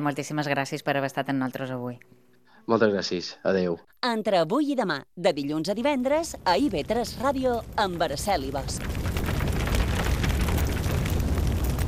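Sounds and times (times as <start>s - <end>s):
speech: 0.0s - 9.1s
forest fire burning: 5.5s - 11.8s.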